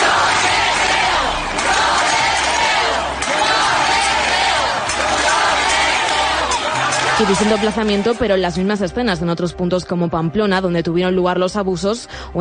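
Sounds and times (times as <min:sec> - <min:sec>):
protest crowd shouting: 0:00.0 - 0:08.2
speech: 0:07.2 - 0:12.4.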